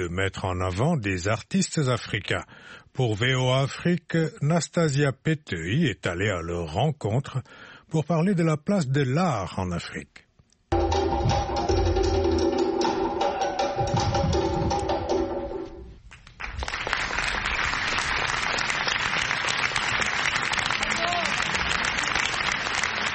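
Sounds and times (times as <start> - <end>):
speech: 0.0 - 10.2
music with steady tones: 10.7 - 16.0
crowd applauding and cheering: 16.1 - 23.1.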